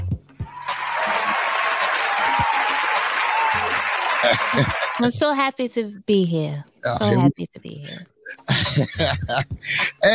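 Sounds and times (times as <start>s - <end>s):
applause sound effect: 0.5s - 5.1s
laughter: 0.7s - 5.1s, 6.9s - 7.3s, 7.9s - 10.1s
speech: 4.3s - 10.1s.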